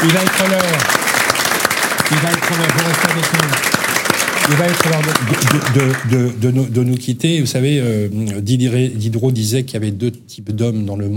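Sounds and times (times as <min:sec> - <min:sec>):
speech: 0:00.0 - 0:01.0, 0:02.1 - 0:03.7, 0:04.5 - 0:11.1
audience applause: 0:00.0 - 0:06.3.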